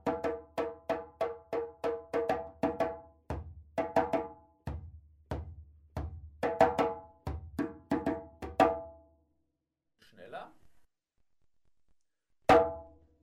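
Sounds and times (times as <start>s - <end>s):
djembe playing a solo kuku rhythm: 0.0s - 8.9s.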